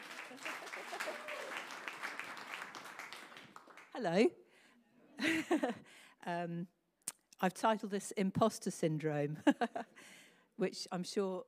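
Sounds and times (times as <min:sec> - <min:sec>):
laughter: 0:00.0 - 0:01.7, 0:05.2 - 0:05.8
crowd applauding: 0:00.0 - 0:04.0
speech: 0:04.0 - 0:04.4, 0:05.2 - 0:06.8, 0:07.4 - 0:11.4.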